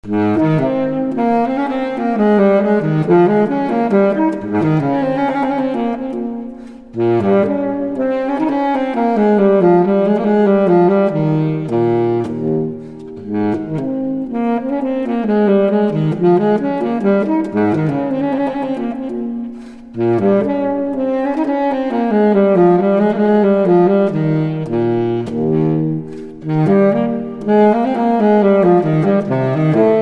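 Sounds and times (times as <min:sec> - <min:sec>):
baritone saxophone playing a minuet: 0:00.0 - 0:29.9.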